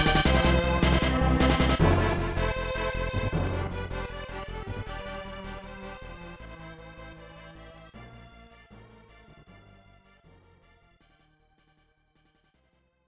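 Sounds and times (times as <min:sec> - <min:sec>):
orchestral jingle: 0:00.0 - 0:05.5.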